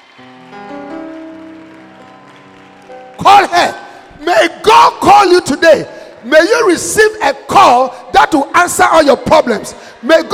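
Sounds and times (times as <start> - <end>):
crowd clapping: 0.0 - 4.7
sustained organ-like chords: 0.0 - 7.5
speech: 4.4 - 10.3.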